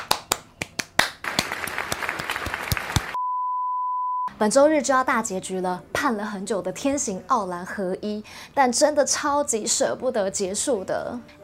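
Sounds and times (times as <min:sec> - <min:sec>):
hand clapping: 0:00.0 - 0:03.2
speech: 0:04.4 - 0:11.4.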